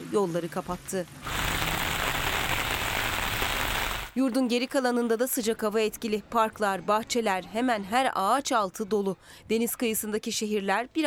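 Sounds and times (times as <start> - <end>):
speech: 0.1 - 1.4, 4.2 - 11.0
heavy rain: 1.2 - 4.2.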